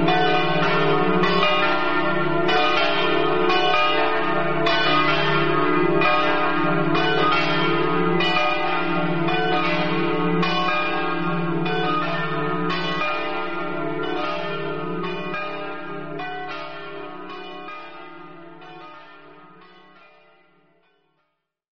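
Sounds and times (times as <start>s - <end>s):
church bells in Orsaria: 0.0s - 21.5s.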